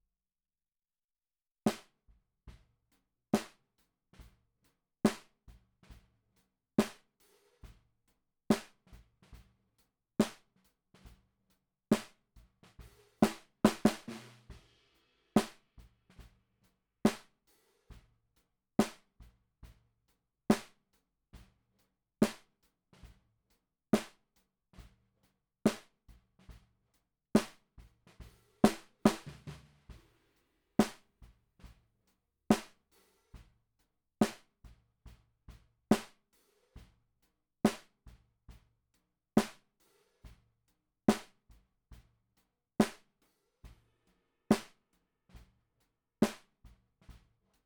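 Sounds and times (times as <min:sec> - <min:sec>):
snare drum recorded from the bottom: 0:01.7 - 0:01.9, 0:03.4 - 0:03.6, 0:05.1 - 0:06.1, 0:06.8 - 0:07.8, 0:08.5 - 0:09.4, 0:10.2 - 0:11.2, 0:11.9 - 0:16.4, 0:17.1 - 0:17.3, 0:18.8 - 0:19.1, 0:20.5 - 0:20.8, 0:22.2 - 0:23.2, 0:24.0 - 0:24.2, 0:25.7 - 0:26.6, 0:27.4 - 0:31.8, 0:32.5 - 0:33.5, 0:34.2 - 0:34.6, 0:35.9 - 0:36.9, 0:37.7 - 0:38.0, 0:39.4 - 0:39.6, 0:41.1 - 0:41.4, 0:42.8 - 0:43.1, 0:44.5 - 0:44.8, 0:46.2 - 0:47.2.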